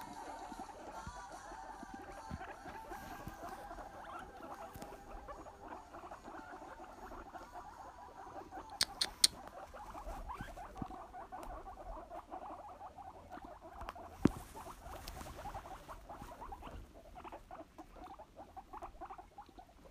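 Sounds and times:
soft pattering and rustling: 0.0s - 8.6s, 9.3s - 19.8s
guinea pigs squeaking in short high chirps: 0.0s - 19.8s
sharp clicks: 8.7s - 9.5s.

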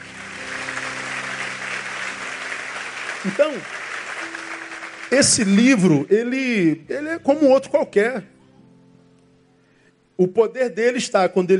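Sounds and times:
audience applause: 0.0s - 6.0s
speech: 3.2s - 3.9s, 5.1s - 8.3s, 10.2s - 11.5s.

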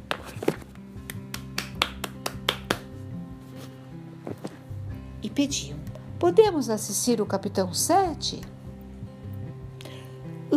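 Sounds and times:
hands clapping: 0.1s - 3.0s
speech: 5.3s - 8.6s.

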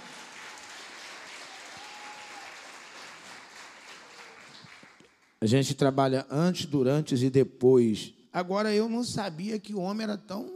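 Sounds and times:
audience applause: 0.0s - 5.4s
speech: 5.4s - 10.5s.

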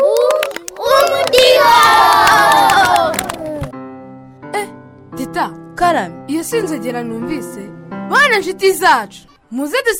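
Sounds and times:
crowd clapping and cheering: 0.0s - 3.7s
speech: 6.0s - 9.9s.

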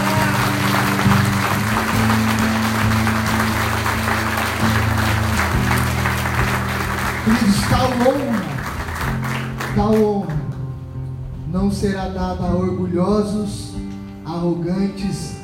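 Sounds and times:
audience applause: 0.0s - 10.1s
speech: 7.3s - 8.5s, 9.8s - 10.3s, 11.6s - 13.8s, 14.4s - 15.4s.

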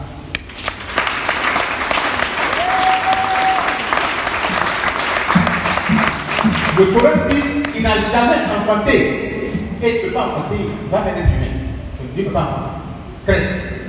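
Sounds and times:
congregation applauding during a sermon: 0.4s - 7.8s
speech: 6.8s - 11.5s, 12.2s - 12.7s, 13.3s - 13.7s.

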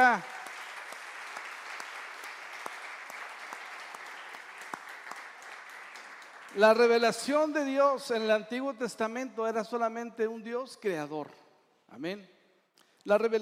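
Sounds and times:
speech: 0.0s - 0.4s, 6.6s - 12.4s, 13.0s - 13.4s
audience applause: 0.0s - 7.2s.

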